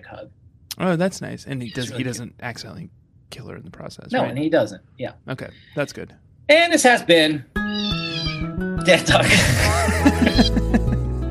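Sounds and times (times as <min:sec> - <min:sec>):
speech: 0:00.1 - 0:10.8
kitten meowing: 0:01.6 - 0:02.0, 0:07.6 - 0:08.5
laughter: 0:09.1 - 0:11.1.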